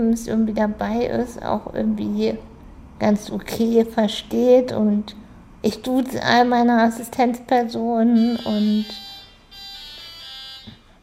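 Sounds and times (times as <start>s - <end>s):
speech: 0.0s - 9.1s
doorbell ringing: 8.2s - 11.0s.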